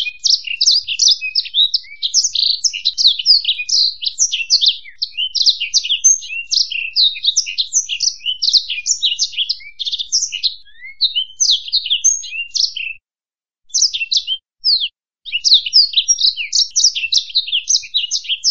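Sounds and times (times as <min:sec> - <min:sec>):
black-throated canary singing: 0:00.0 - 0:13.0, 0:13.7 - 0:18.4.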